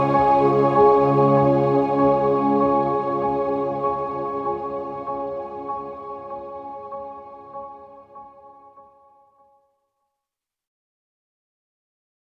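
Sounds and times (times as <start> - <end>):
instrumental music: 0.0 - 9.4.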